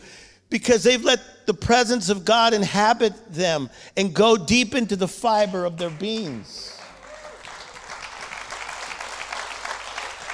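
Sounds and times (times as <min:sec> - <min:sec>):
speech: 0:00.5 - 0:06.8
audience clapping hands: 0:05.6 - 0:10.3.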